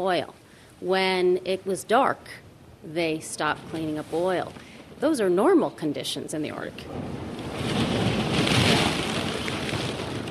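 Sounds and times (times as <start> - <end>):
speech: 0.0 - 7.8
icebreaker grinding through thick sea ice: 7.5 - 10.2.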